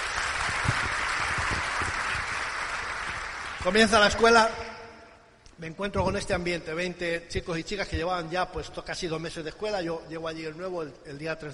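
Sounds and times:
sharp individual claps: 0.0 - 3.8
crowd applauding: 0.0 - 4.4
speech: 3.6 - 4.6, 5.6 - 11.5.

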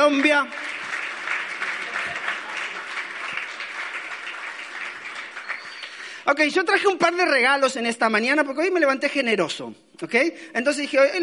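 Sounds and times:
audience applause: 0.0 - 6.2
speech: 0.1 - 0.7, 6.3 - 11.2.

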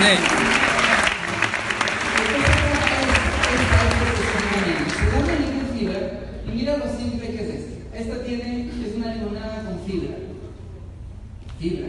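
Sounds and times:
speech: 0.0 - 0.5, 6.6 - 10.4, 11.6 - 11.8
audience applause: 0.0 - 5.5.

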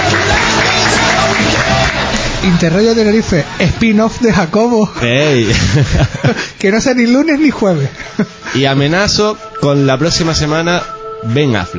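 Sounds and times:
applause: 0.0 - 3.4
speech: 2.4 - 11.7
laughter: 5.2 - 6.6, 7.9 - 8.6.

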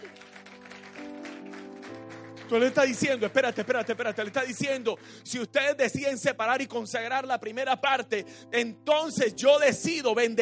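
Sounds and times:
audience applause: 0.0 - 4.9
speech: 2.5 - 10.4.

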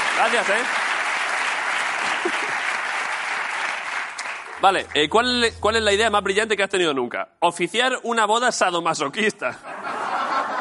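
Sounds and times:
audience applause for two guests on a comedy show: 0.0 - 4.9
speech: 0.2 - 0.8, 2.2 - 2.7, 4.6 - 9.8
laughter: 9.6 - 10.6.

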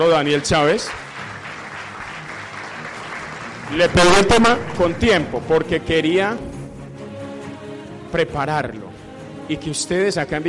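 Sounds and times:
speech: 0.0 - 1.0, 3.7 - 6.5, 8.1 - 8.9, 9.5 - 10.4
audience applause: 0.0 - 5.6.

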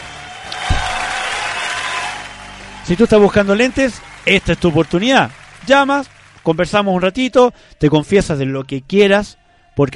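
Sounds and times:
applause sound effect: 0.0 - 7.4
low thump: 0.6 - 1.2
speech: 2.9 - 9.9.

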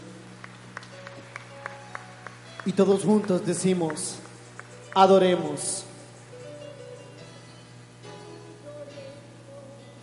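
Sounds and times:
audience applauding: 0.4 - 5.6
speech: 2.6 - 4.3, 5.0 - 5.9.

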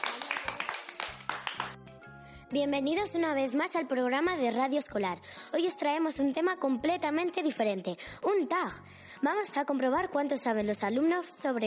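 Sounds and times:
sharp applause for contestants: 0.0 - 1.8
speech: 2.5 - 11.6.

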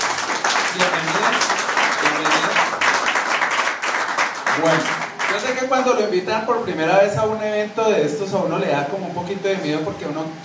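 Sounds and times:
audience applause: 0.0 - 5.7
speech: 4.6 - 10.4.

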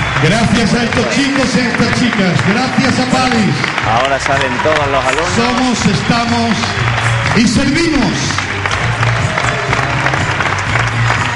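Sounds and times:
theatre audience applauding: 0.0 - 11.3
speech: 0.2 - 8.5.

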